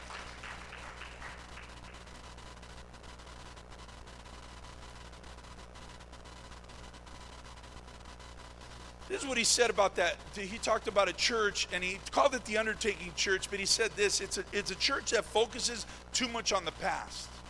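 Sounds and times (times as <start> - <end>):
crowd clapping: 0.0 - 2.2
speech: 9.1 - 17.3.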